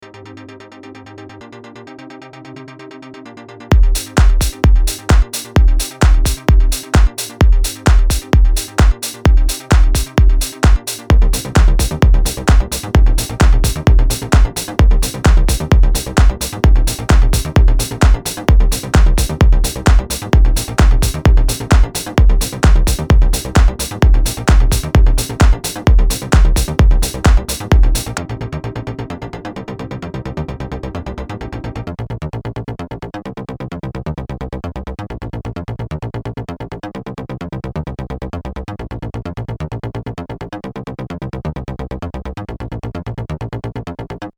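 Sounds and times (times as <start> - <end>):
90s progressive music: 0.0 - 31.9.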